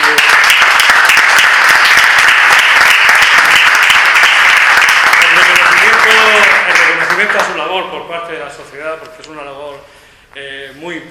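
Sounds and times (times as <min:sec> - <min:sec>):
audience applause at an exhibition opening: 0:00.0 - 0:07.7
speech: 0:08.0 - 0:09.6.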